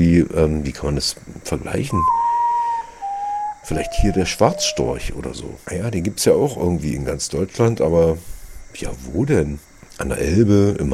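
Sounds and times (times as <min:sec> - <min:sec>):
speech: 0:00.0 - 0:02.2, 0:03.7 - 0:10.9
common potoo plaintive whistled notes: 0:01.8 - 0:05.5.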